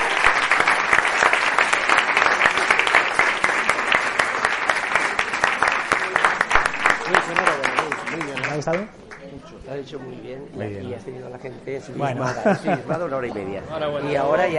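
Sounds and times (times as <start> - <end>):
audience applause: 0.0 - 9.3
speech: 8.7 - 14.5
laughter: 12.0 - 13.4.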